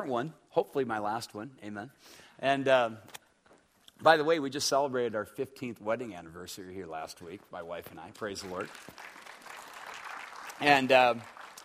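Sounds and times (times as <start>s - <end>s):
speech: 0.0s - 3.2s, 4.0s - 9.2s, 10.6s - 11.4s
audience applause: 8.3s - 11.6s.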